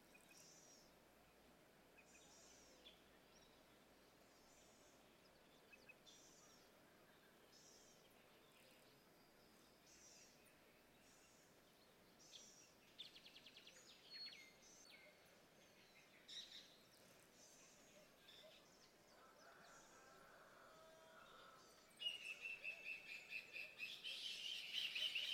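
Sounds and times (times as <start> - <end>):
birds in the countryside: 1.9 - 25.3.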